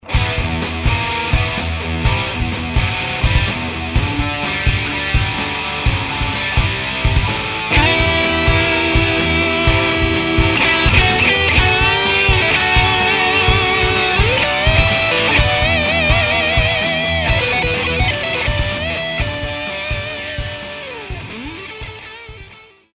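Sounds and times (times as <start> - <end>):
musical riff: 0.0 - 22.7.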